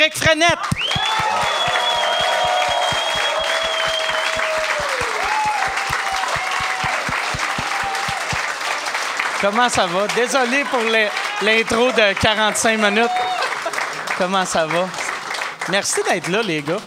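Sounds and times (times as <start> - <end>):
speech: 0.0 - 1.5, 9.4 - 13.4, 14.2 - 15.0, 15.7 - 16.8
crowd clapping for guests: 0.4 - 16.8
whoops and cheers: 0.6 - 8.4, 10.4 - 13.7.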